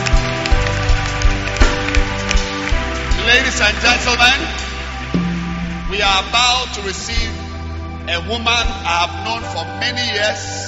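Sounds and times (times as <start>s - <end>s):
audience clapping hands: 0.0s - 6.8s
speech: 3.4s - 4.7s, 6.0s - 7.4s, 8.1s - 10.6s.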